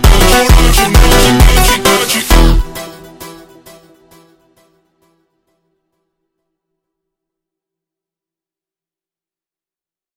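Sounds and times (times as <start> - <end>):
sped up funk music: 0.0 - 4.7.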